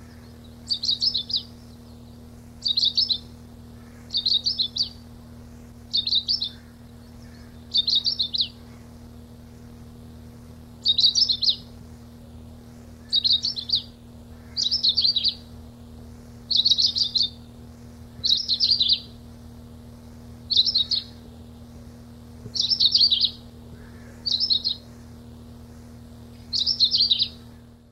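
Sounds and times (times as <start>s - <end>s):
Long-tailed rosefinch high buzzy twittering phrases: 0.0s - 8.9s, 10.8s - 11.8s, 13.0s - 15.5s, 16.2s - 19.2s, 20.4s - 21.2s, 22.5s - 24.9s, 26.3s - 27.6s
faint background hum: 0.0s - 27.8s.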